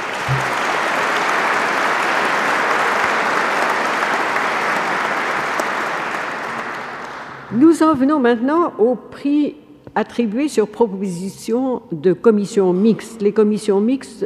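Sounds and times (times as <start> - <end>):
audience applause for award laureate: 0.0 - 7.5
speech: 7.8 - 14.2.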